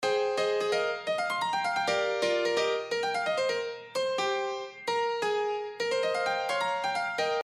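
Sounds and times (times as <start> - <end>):
piano: 0.0 - 7.4.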